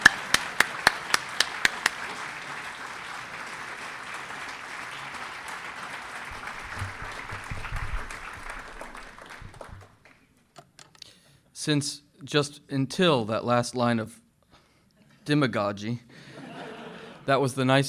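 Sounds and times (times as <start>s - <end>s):
audience applause welcoming a speaker at a lecture: 0.0s - 10.2s
speech: 11.6s - 14.2s, 15.2s - 16.3s, 17.3s - 17.8s
laughter: 16.2s - 17.3s.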